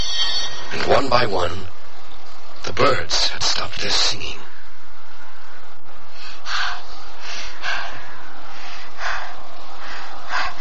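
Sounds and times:
speech: 0:00.7 - 0:01.8, 0:02.7 - 0:04.5
loud breathing: 0:06.0 - 0:10.6.

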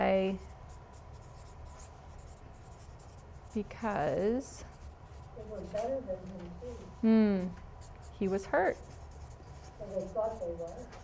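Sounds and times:
pen scratching on paper writing answers by hand: 0:00.4 - 0:05.9, 0:07.8 - 0:11.0
speech: 0:03.6 - 0:04.7, 0:05.4 - 0:09.0, 0:09.8 - 0:11.0.

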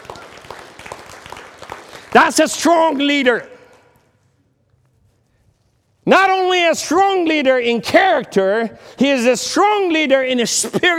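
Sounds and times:
audience clapping hands: 0:00.0 - 0:04.1
speech: 0:02.1 - 0:03.5, 0:06.1 - 0:10.9.

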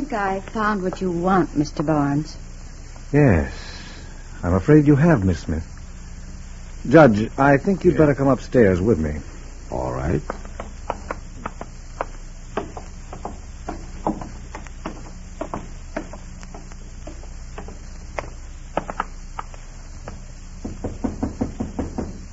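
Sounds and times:
speech: 0:00.1 - 0:02.4, 0:03.1 - 0:03.7, 0:04.4 - 0:05.7, 0:06.8 - 0:10.4
knocking on a door: 0:12.5 - 0:17.8, 0:20.1 - 0:22.3.

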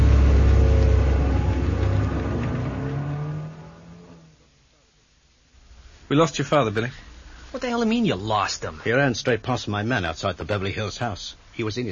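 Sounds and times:
car engine revving and pulling away: 0:00.0 - 0:04.4
speech: 0:06.1 - 0:11.9.

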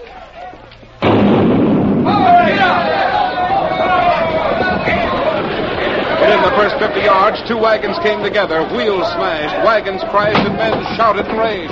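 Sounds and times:
starting cannon firing: 0:01.0 - 0:07.3
speech: 0:06.4 - 0:11.7.

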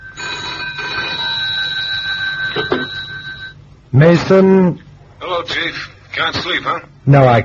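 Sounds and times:
telephone ringing by the bedside: 0:00.0 - 0:03.7
speech: 0:02.6 - 0:02.9, 0:03.9 - 0:04.8, 0:05.4 - 0:07.4.

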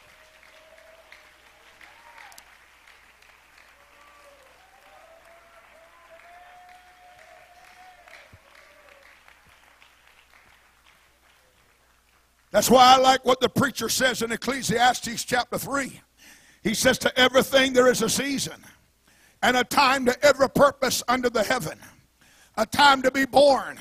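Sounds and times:
faint cheering: 0:00.0 - 0:02.6, 0:03.6 - 0:09.4
audience clapping: 0:00.0 - 0:12.6
speech: 0:12.6 - 0:18.8, 0:19.4 - 0:22.0, 0:22.6 - 0:23.7.

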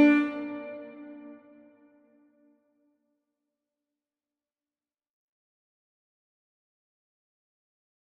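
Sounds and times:
musical scale in B flat: 0:00.0 - 0:01.3.

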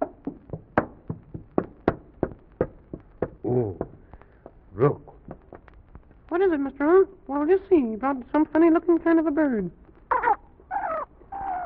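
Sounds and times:
hurried footsteps: 0:00.0 - 0:05.8
speech: 0:03.5 - 0:03.8, 0:04.8 - 0:05.1, 0:06.4 - 0:09.8.

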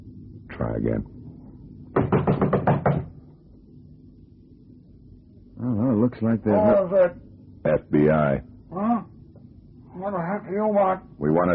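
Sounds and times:
speech: 0:00.6 - 0:01.2, 0:06.1 - 0:08.8, 0:10.0 - 0:11.5
knocking on apartment door: 0:01.9 - 0:03.2.

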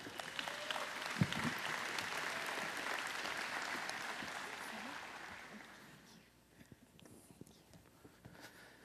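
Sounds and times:
church congregation applauding the preacher's wife: 0:00.0 - 0:06.2.

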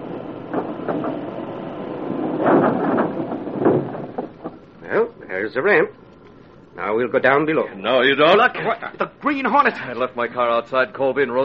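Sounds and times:
wall sliding open: 0:00.0 - 0:05.0
speech: 0:05.4 - 0:06.0, 0:06.8 - 0:11.4.

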